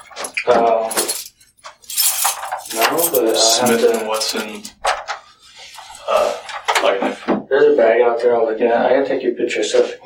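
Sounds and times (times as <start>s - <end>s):
keys jangling as they are handed over: 0.0s - 4.8s
speech: 0.4s - 1.0s, 3.4s - 4.8s, 6.9s - 10.0s.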